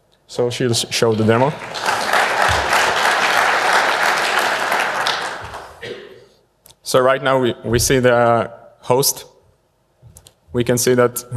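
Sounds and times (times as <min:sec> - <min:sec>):
speech: 0:00.3 - 0:02.1, 0:06.9 - 0:09.3, 0:10.5 - 0:11.3
audience applause: 0:01.0 - 0:05.8.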